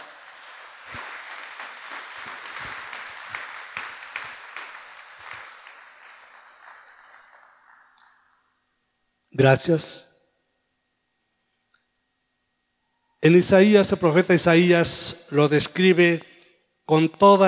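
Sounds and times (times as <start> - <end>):
applause: 0.0 - 8.6
speech: 9.4 - 10.1, 13.2 - 16.3, 16.9 - 17.4.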